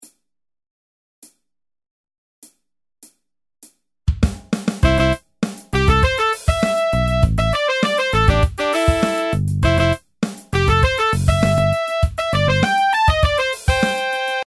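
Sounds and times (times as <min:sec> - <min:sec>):
brass: 0:04.8 - 0:05.2, 0:05.8 - 0:10.0, 0:10.6 - 0:14.4.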